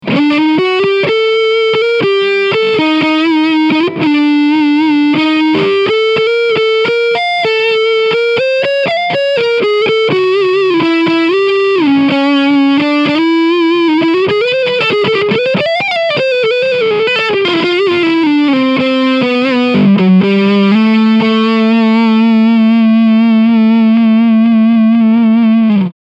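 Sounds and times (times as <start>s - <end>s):
lead guitar on front pickup: 0.0s - 25.9s.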